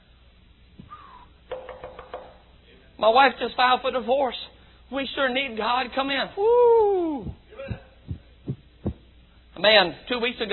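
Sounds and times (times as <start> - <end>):
knocking on a door: 1.5 - 2.4
speech: 3.0 - 7.4, 9.6 - 10.5.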